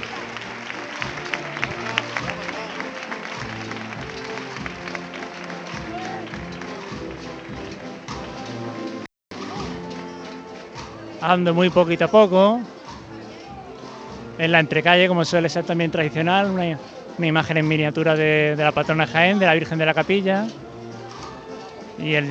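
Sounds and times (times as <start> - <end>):
crowd applauding a procession float: 0.0 - 10.4
layered band music with low sustained notes: 0.0 - 22.3
speech: 11.2 - 12.8, 14.4 - 20.6, 22.0 - 22.3.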